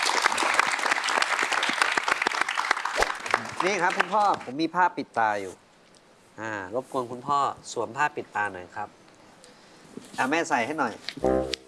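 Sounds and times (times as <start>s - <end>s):
audience applause: 0.0s - 4.4s
speech: 3.6s - 5.6s, 6.4s - 9.0s, 10.2s - 11.6s.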